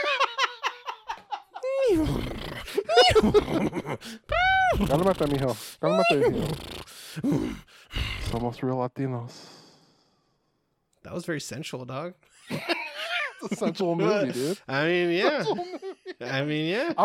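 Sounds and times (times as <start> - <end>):
laughter: 0.0 - 1.9, 2.7 - 4.1, 12.4 - 17.0
person imitating a horse: 1.6 - 3.6, 4.2 - 8.5
speech: 3.1 - 9.5, 11.0 - 12.8, 13.4 - 17.0.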